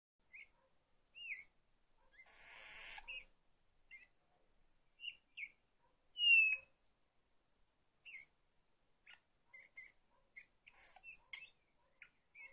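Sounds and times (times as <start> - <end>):
Eurasian bullfinch song: 0.2 - 3.3, 3.9 - 4.2, 5.0 - 7.0, 8.0 - 8.4, 9.0 - 12.5.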